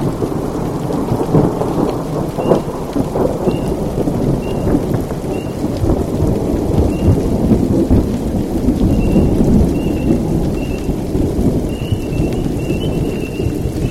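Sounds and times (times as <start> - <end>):
rain at night in Florence KY: 0.0 - 13.9
thunder at night in Florence KY: 0.0 - 13.9
spring peepers calling at night in Florence KY: 2.4 - 2.7, 3.4 - 3.8, 4.4 - 4.7, 5.3 - 5.6, 6.9 - 7.2, 8.9 - 10.9, 11.7 - 13.9.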